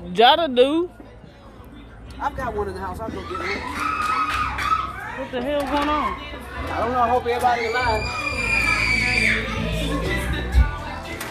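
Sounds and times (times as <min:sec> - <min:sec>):
noisy voices: 0:00.0 - 0:11.2
speech: 0:00.2 - 0:01.0, 0:02.2 - 0:04.1, 0:05.2 - 0:08.3
people screaming at a July 4th gathering: 0:03.1 - 0:05.2, 0:07.2 - 0:10.0.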